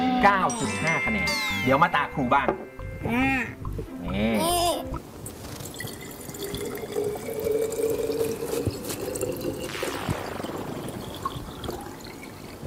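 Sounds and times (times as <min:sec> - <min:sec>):
speech: 0:00.2 - 0:04.6
water pouring into a container: 0:05.4 - 0:12.6.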